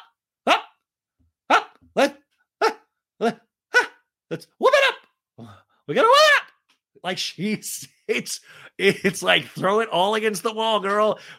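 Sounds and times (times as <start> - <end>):
human voice making high-pitched yelps like a little dog: 0.5 - 0.7, 1.5 - 4.0, 6.0 - 6.5
speech: 2.0 - 2.2, 3.2 - 3.4, 4.3 - 6.4, 7.0 - 11.3.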